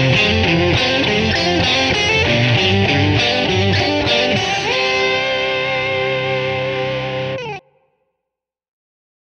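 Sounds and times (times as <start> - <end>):
fast chromatic arpeggio etude with embellishment: 0.0 - 7.4.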